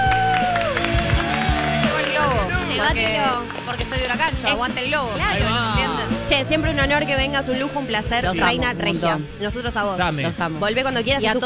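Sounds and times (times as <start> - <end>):
audience applause: 0.0 - 6.5
audience cheering: 0.0 - 8.6
speech: 2.9 - 11.4.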